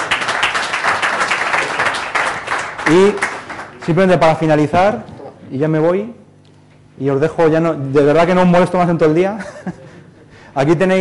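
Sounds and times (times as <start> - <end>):
group applause for the winners of a prize: 0.0 - 4.0
speech: 2.9 - 3.2, 3.9 - 6.2, 7.0 - 9.8, 10.6 - 10.9
laughter: 9.4 - 10.4.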